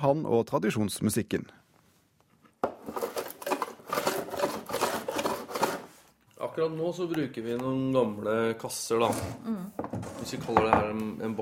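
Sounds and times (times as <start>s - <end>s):
speech: 0.0s - 1.6s, 6.6s - 11.3s
hand plane shaving wood of a langeleik: 3.4s - 5.9s.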